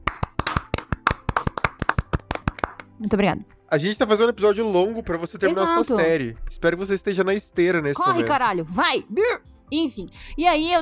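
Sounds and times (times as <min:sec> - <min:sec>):
quick sharp hand claps: 0:00.0 - 0:03.2
speech: 0:03.0 - 0:10.7.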